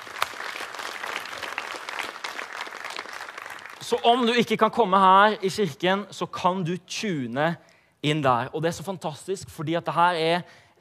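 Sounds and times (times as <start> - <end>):
audience applause in church: 0.0 - 4.0
speech: 3.8 - 10.7.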